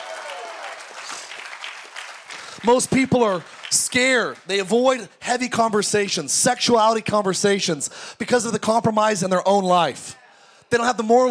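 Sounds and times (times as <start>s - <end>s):
audience hand clapping: 0.0s - 5.1s
speech: 2.6s - 11.2s.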